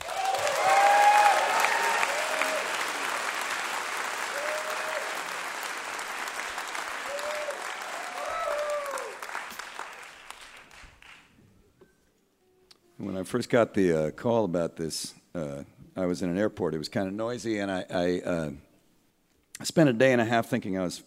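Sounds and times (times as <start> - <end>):
whoops and cheers: 0.0 - 3.0, 4.2 - 5.4, 7.0 - 9.3
crowd clapping after live performance: 0.0 - 11.4
speech: 13.2 - 18.7, 19.6 - 21.0.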